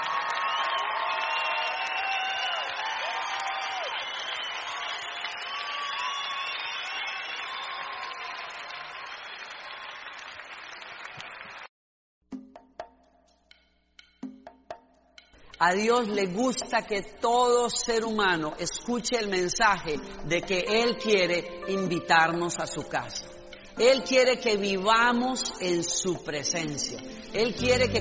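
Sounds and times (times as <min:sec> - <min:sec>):
audience applause at a worship service: 0:00.0 - 0:11.7
speech: 0:15.6 - 0:28.0.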